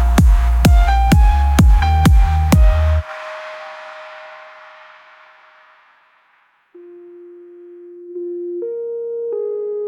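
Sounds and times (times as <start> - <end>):
noise tone: 0.0 - 9.3.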